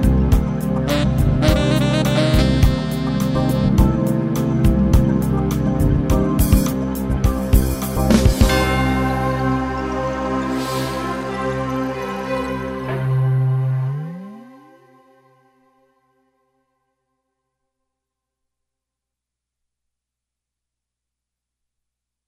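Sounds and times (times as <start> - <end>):
mountain music keyboards: 0.0 - 15.5.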